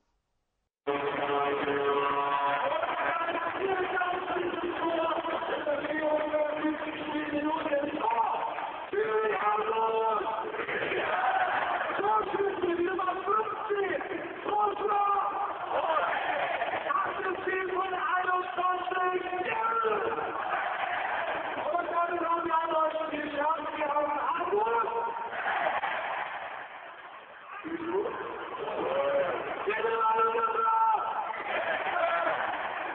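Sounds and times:
ice hockey crowd cheering a goal: 0.9 - 32.9
ice hockey crowd chanting: 10.5 - 12.0, 15.4 - 17.0, 20.1 - 21.7, 25.1 - 27.7, 31.2 - 32.9.

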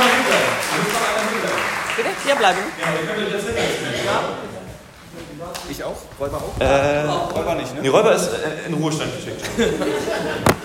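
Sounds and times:
audience applause: 0.0 - 3.5
speech: 2.3 - 4.5, 5.1 - 10.6
laughter: 8.2 - 10.6.

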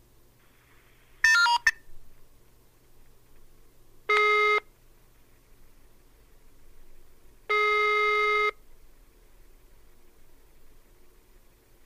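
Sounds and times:
electronic telephone tones: 1.2 - 1.8, 7.5 - 8.6.

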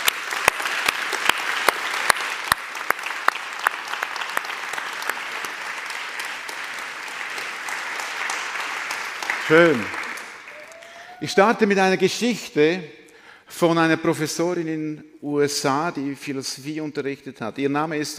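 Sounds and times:
audience applause: 0.0 - 12.0
speech: 9.5 - 10.0, 11.2 - 18.1.

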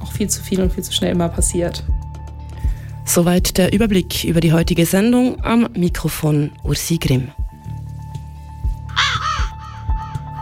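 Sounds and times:
speech: 0.2 - 2.0, 3.1 - 7.4
raven cawing: 8.9 - 10.3.

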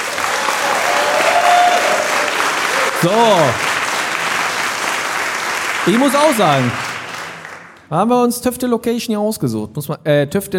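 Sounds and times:
audience applause: 0.0 - 7.9
speech: 3.0 - 3.7, 5.8 - 6.8, 7.9 - 10.5.

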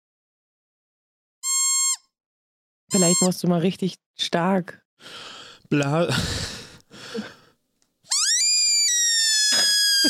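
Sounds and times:
dog whistle: 1.4 - 2.1, 8.1 - 10.0
speech: 2.9 - 6.5.

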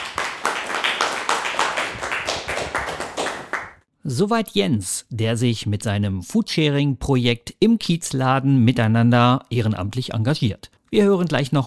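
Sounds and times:
applause from gathered guests: 0.0 - 3.8
speech: 4.1 - 11.6.

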